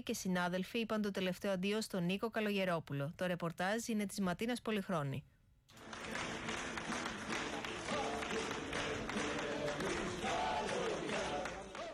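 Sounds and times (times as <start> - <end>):
speech: 0.0 - 5.9
warm applause from mourners at a funeral: 5.7 - 11.9.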